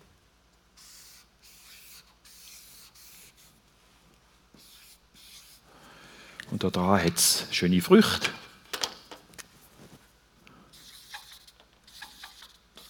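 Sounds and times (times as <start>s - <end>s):
pen scratching across paper drawing a small plant: 0.8s - 3.5s, 4.6s - 5.6s, 10.8s - 12.8s
speech: 6.5s - 8.4s.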